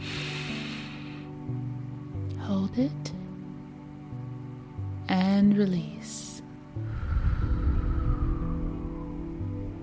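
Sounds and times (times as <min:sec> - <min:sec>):
deep breath in: 0:00.0 - 0:01.4, 0:06.8 - 0:09.6
soft low musical drone: 0:00.0 - 0:09.8
speech: 0:02.5 - 0:03.1, 0:05.3 - 0:06.2.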